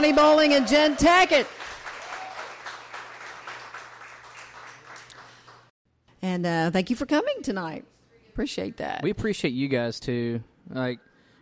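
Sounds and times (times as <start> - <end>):
speech: 0.0 - 1.6, 6.2 - 11.3
audience applause: 0.0 - 5.7.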